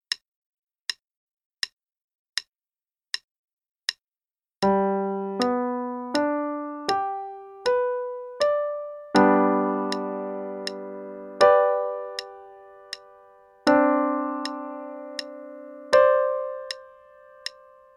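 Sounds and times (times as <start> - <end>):
chords in G at 80 quarter notes per minute: 4.6 - 17.9.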